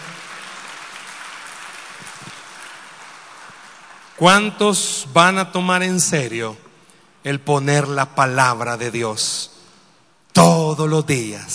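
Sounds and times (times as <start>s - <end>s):
audience applauding: 0.0s - 4.2s
speech: 4.2s - 6.6s, 7.2s - 9.6s, 10.4s - 11.5s.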